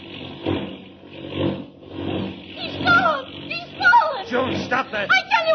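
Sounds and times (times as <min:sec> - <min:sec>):
airplane engine during sudden plunge: 0:00.0 - 0:03.7
speech: 0:04.7 - 0:05.4.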